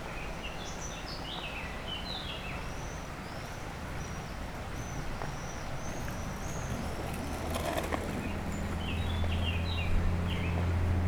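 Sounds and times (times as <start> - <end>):
warbler song: 0.1 - 11.0.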